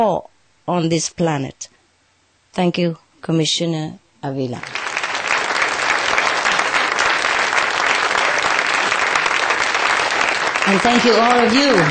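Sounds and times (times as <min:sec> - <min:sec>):
speech: 0:00.0 - 0:01.7, 0:02.6 - 0:04.8, 0:10.7 - 0:11.9
audience applause: 0:04.6 - 0:11.9.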